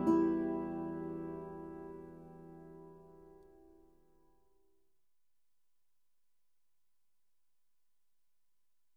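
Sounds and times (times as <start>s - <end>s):
traditional string music: 0.0s - 3.5s.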